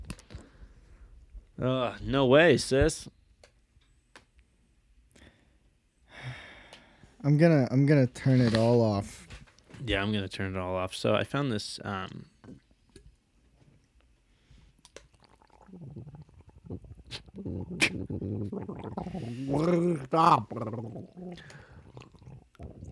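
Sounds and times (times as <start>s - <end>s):
speech: 1.6s - 3.2s, 7.2s - 12.3s, 17.1s - 21.7s
person gargling: 15.2s - 22.9s.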